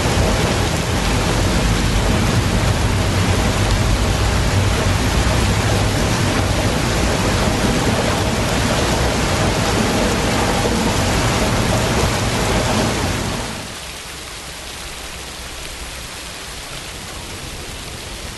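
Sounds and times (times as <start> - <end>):
rain: 0.0 - 18.3.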